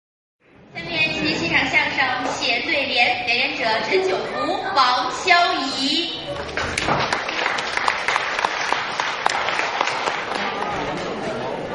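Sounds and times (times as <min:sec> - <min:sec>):
speech: 0:01.6 - 0:07.2
audience applause: 0:06.4 - 0:11.5.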